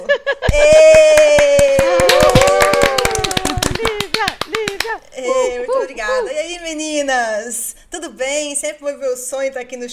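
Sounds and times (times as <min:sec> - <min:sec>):
audience applause: 0:00.6 - 0:04.9
speech: 0:06.6 - 0:09.9.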